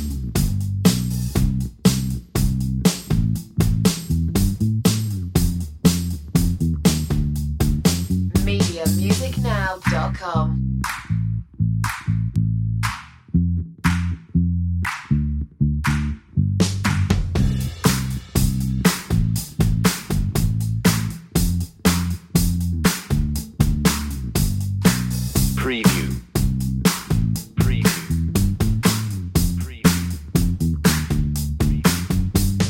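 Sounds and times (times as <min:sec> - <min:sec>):
joyful pop drums: 0:00.0 - 0:11.1, 0:16.6 - 0:32.6
joyful pop bass: 0:00.0 - 0:32.6.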